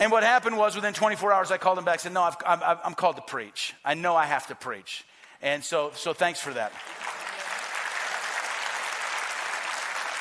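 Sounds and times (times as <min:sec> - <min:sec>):
speech: 0:00.0 - 0:07.1
audience clapping: 0:06.5 - 0:10.1.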